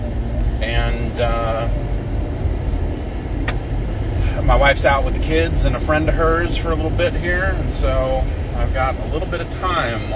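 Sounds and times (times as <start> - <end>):
car driving: 0.0 - 10.1
speech: 4.5 - 10.1.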